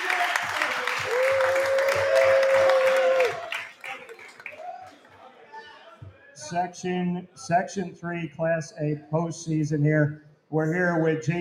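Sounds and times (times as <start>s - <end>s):
round of applause: 0.0s - 5.3s
speech: 6.5s - 11.3s.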